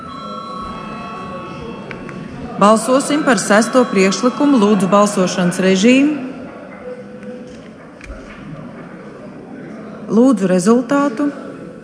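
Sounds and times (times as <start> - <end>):
parliamentary voting call bell ringing: 0.0 - 6.5
faint murmur: 0.0 - 11.8
speech: 2.6 - 6.3, 10.2 - 11.4.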